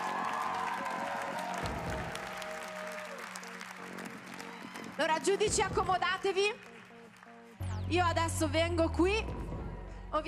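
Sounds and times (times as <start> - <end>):
audience applause: 0.0 - 7.6
speech: 5.0 - 6.7, 7.9 - 9.4.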